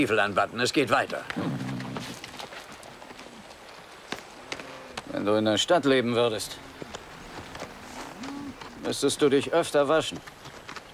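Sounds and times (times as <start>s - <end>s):
speech: 0.0s - 1.6s, 5.1s - 7.0s, 8.8s - 10.3s
horse's hooves clopping: 0.0s - 10.9s.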